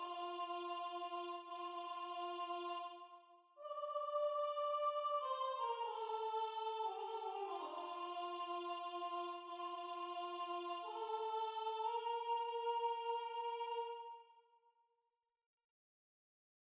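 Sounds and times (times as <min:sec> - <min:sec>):
soprano singing na nda syllables: 0:00.0 - 0:14.2.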